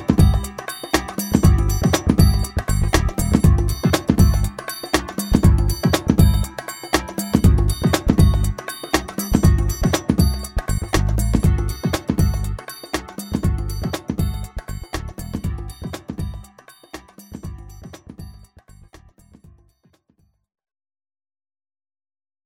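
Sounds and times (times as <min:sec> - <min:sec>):
acid jazz music: 0:00.0 - 0:18.8.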